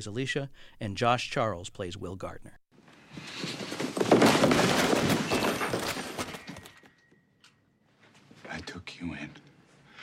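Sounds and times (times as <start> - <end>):
speech: 0.0 - 2.6, 8.6 - 9.5
objects swept off a desk crashing and clattering: 3.0 - 7.1.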